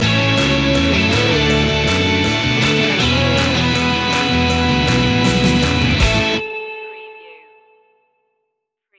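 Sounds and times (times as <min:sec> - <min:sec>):
rock and roll music stinger: 0:00.0 - 0:06.4.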